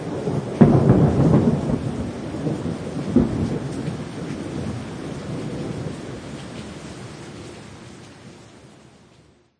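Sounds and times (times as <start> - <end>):
thunder in thunderstorms: 0.0 - 6.8
storms recorded binaurally: 0.0 - 9.4.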